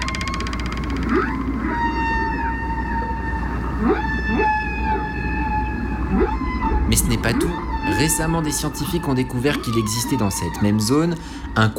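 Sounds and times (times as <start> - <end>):
whale song: 0.0 - 11.7
speech: 7.2 - 11.7.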